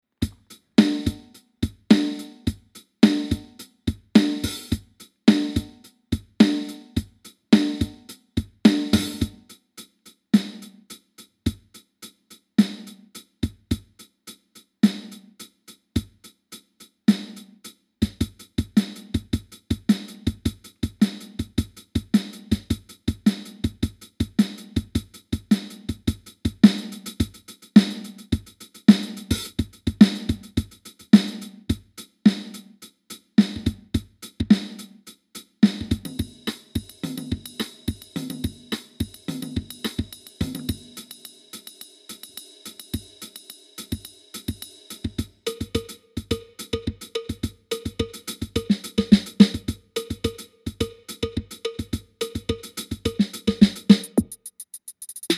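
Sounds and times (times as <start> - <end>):
Vox Mini Go beats: 0.2 - 16.4, 17.1 - 55.3.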